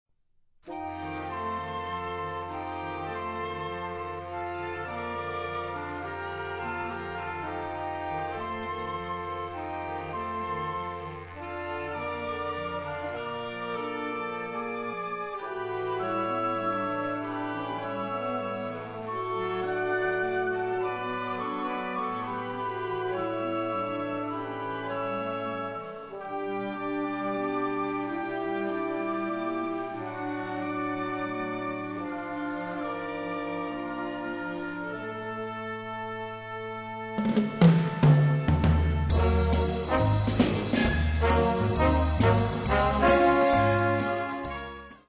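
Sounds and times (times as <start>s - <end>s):
brass: 0.6s - 45.0s
bongos: 37.2s - 45.0s.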